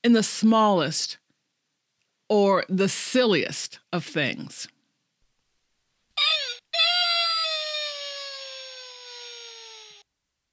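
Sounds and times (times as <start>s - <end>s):
speech: 0.0s - 1.2s, 2.3s - 4.8s
high-pitched squeal of Mr. Bill, clay figurine from Saturday Night Live: 6.2s - 10.0s
long nasal wail falling in pitch: 6.2s - 10.0s.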